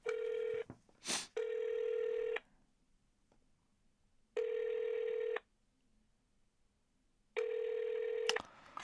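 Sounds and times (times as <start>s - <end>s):
telephone dialing tone: 0.0s - 0.6s, 1.4s - 2.4s, 4.4s - 5.4s, 7.4s - 8.8s.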